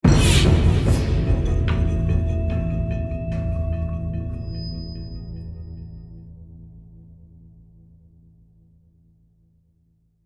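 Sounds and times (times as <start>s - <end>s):
demons musical stinger: 0.1s - 7.4s.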